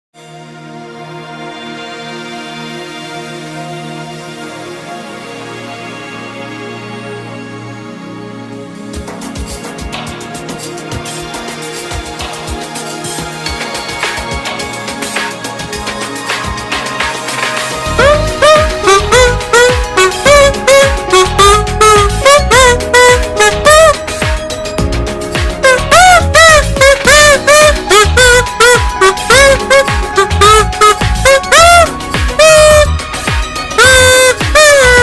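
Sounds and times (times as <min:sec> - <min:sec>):
kazoo playing: 0:16.5 - 0:24.8, 0:25.4 - 0:35.0.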